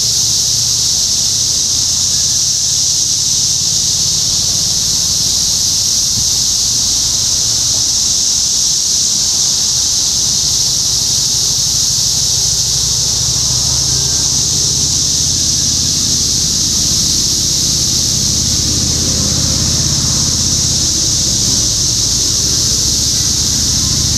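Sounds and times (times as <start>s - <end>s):
cicadas droning: 0.0s - 24.1s
low engine-like rumble: 11.2s - 24.1s.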